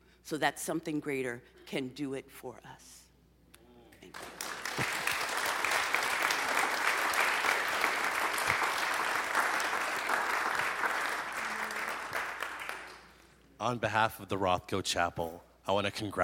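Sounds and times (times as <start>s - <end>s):
speech: 0.3s - 3.0s, 13.6s - 16.2s
audience applause at the 2023 Rothko Chapel Óscar Romero Award Ceremony: 4.1s - 13.2s.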